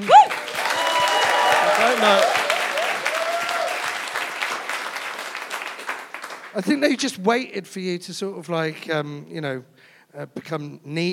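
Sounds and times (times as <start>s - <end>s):
audience clapping: 0.0s - 6.9s
speech: 2.0s - 2.4s, 6.6s - 11.1s.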